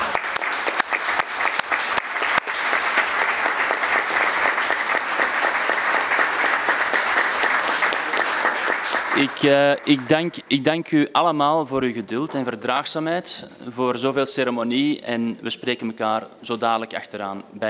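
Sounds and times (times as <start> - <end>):
short round of applause: 0.0 - 10.6
speech: 9.2 - 17.6.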